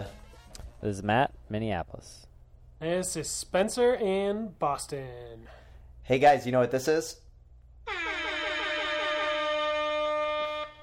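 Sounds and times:
speech: 0.8s - 7.2s
air horn blast starting a triathlon race: 7.8s - 10.8s.

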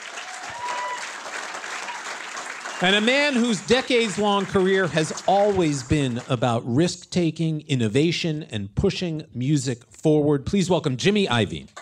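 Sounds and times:
audience applause welcoming a film director on stage at a theater: 0.0s - 6.5s
speech: 2.8s - 11.8s.

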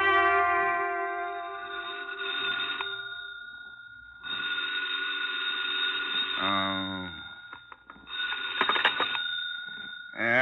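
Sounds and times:
telephone ringing: 0.0s - 10.3s.

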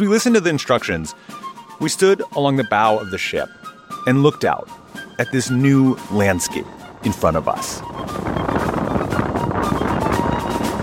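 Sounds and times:
speech: 0.0s - 8.4s
strong Arctic wind on ship deck: 5.8s - 10.8s.

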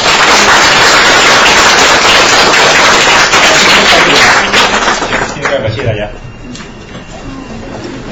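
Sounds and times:
audience applause: 0.0s - 6.1s.

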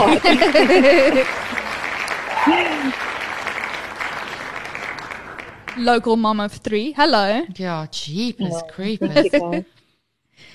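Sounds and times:
laughter: 0.0s - 3.0s, 8.4s - 9.6s
round of applause: 0.0s - 5.8s
speech: 0.1s - 1.6s, 5.8s - 9.7s.

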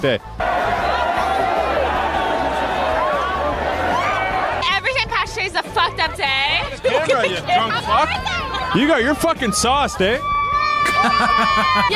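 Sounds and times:
speech: 0.0s - 0.5s, 5.5s - 10.3s, 11.0s - 11.9s
people shouting: 0.4s - 5.1s, 7.8s - 11.9s
drunken rowdy party crowd chatter: 0.4s - 10.9s
laughter: 6.1s - 8.8s, 10.8s - 11.9s.

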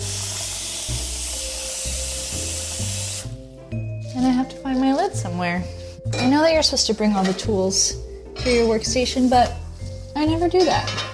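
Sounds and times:
water running from a tap into a cooking pot: 0.0s - 3.4s
speech: 4.2s - 9.6s, 10.2s - 11.1s.

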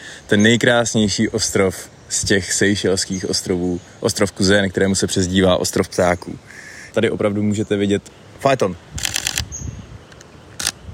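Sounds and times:
speech: 0.3s - 9.1s
camera shutter clicks: 9.0s - 9.5s, 10.1s - 10.8s.

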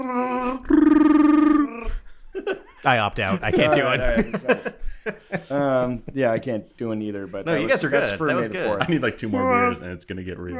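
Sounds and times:
person imitating a Wookiee roar: 0.0s - 2.0s
laughter: 2.3s - 5.9s, 7.6s - 9.8s
speech: 2.8s - 4.8s, 5.5s - 10.5s.

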